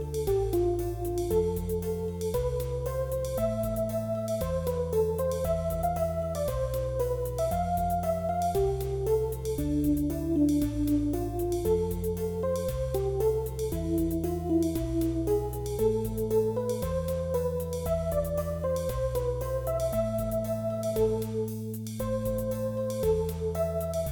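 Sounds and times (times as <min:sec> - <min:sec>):
soft Wurlitzer electric piano: 0:00.0 - 0:24.1.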